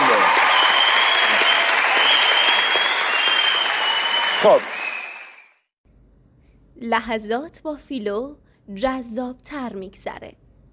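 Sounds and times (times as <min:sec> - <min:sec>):
studio audience standing and applauding: 0:00.0 - 0:05.6
speech: 0:04.4 - 0:04.8, 0:06.8 - 0:10.4.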